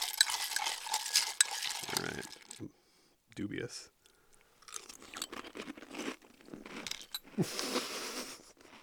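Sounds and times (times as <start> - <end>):
crunching and chewing green onion Chex cereal with milk: 0.0 - 2.7, 4.6 - 8.8
speech: 2.1 - 2.8, 3.4 - 4.0, 7.4 - 7.9.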